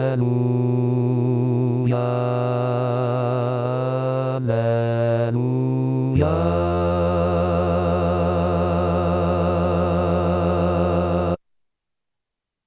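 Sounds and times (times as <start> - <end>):
bass voices singing liturgical music: 0.0 - 11.4.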